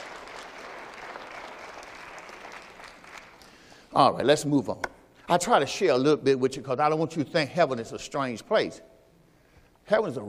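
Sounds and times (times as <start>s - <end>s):
audience applause: 0.0s - 3.6s
speech: 3.9s - 8.9s, 9.9s - 10.2s.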